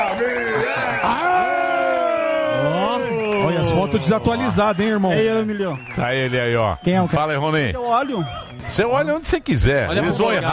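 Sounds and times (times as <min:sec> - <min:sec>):
audience applause and cheering: 0:00.0 - 0:10.5
speech: 0:03.8 - 0:10.5.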